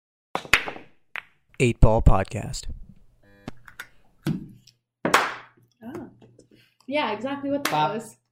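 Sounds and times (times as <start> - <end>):
speech: 1.6 - 2.8, 6.9 - 8.2
hand clap to sync audio and video: 5.1 - 5.6, 7.6 - 7.9.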